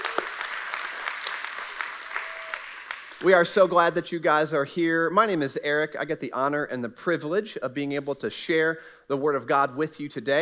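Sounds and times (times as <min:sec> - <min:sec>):
congregation applause in a church welcoming guests: 0:00.0 - 0:03.2
speech: 0:03.2 - 0:10.4.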